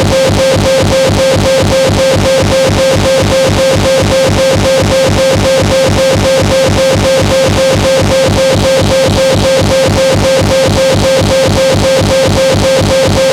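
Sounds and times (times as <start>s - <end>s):
drone loop: 0.0s - 13.3s
noise: 0.0s - 13.3s.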